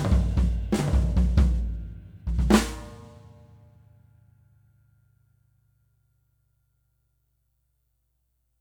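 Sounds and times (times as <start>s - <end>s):
walnut stain drum set: 0.0s - 3.5s.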